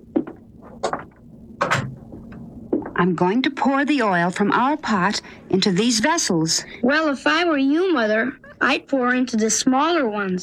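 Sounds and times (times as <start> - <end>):
door being shut: 0.8 - 2.0
speech: 3.0 - 10.4.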